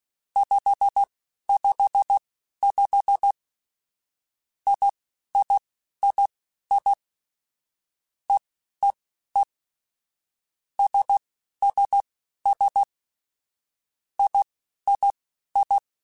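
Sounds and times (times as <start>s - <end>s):
morse code beeps: 0.4s - 3.4s, 4.7s - 7.0s, 10.8s - 12.9s, 14.2s - 15.8s.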